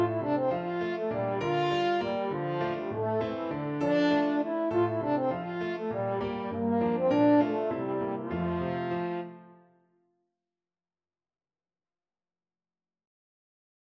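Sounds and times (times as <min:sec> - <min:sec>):
French horn melody: 0:00.0 - 0:09.8.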